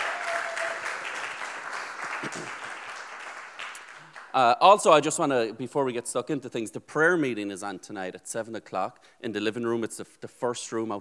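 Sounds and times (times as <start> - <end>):
audience applause: 0.0 - 4.4
speech: 2.2 - 2.6, 4.4 - 10.9.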